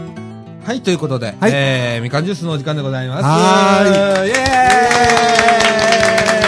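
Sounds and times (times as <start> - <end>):
speech: 0.9 - 5.2
person clapping for themselves: 3.7 - 6.4.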